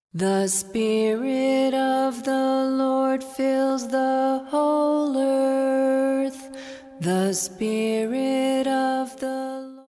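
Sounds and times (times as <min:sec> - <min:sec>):
early Christian chant: 0:00.2 - 0:09.8.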